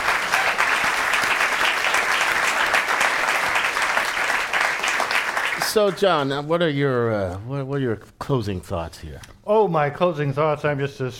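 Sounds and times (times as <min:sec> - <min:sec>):
live audience applause: 0:00.0 - 0:06.4
speech: 0:05.7 - 0:11.1.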